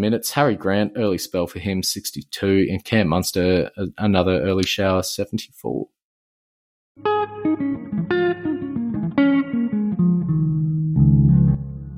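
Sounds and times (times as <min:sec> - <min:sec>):
speech: 0:00.0 - 0:06.0
smooth electric guitar sting with effects: 0:07.0 - 0:11.9.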